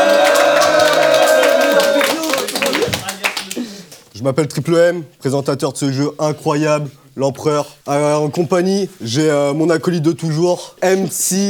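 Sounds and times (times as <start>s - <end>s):
voices calling out: 0.0s - 3.1s
audience cheering for teams: 0.0s - 3.6s
audience clapping for teams: 0.0s - 4.1s
speech: 4.2s - 11.4s.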